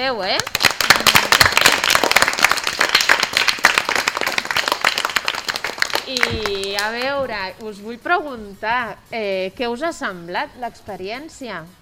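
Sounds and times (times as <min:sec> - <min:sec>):
speech: 0:00.0 - 0:00.6, 0:06.1 - 0:11.7
audience applause: 0:00.5 - 0:06.9.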